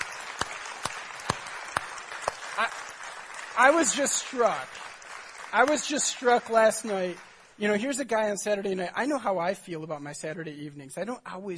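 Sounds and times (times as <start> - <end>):
audience applause: 0.0 - 7.9
speech: 2.6 - 2.8, 3.6 - 4.8, 5.5 - 11.5.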